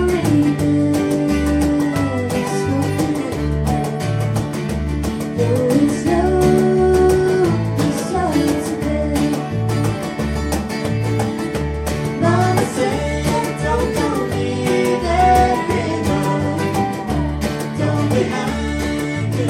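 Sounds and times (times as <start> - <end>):
cajon: 0.0 - 19.4.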